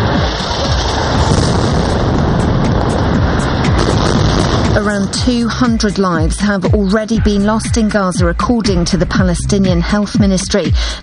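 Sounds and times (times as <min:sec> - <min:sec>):
building collapsing after a bomb strike: 0:00.0 - 0:06.3
speech: 0:04.8 - 0:11.0.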